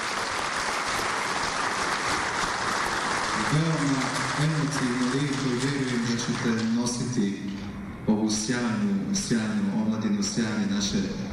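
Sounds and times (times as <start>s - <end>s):
audience applause for visiting guests from Greece: 0.0s - 7.0s
speech: 3.5s - 7.7s, 8.3s - 11.3s.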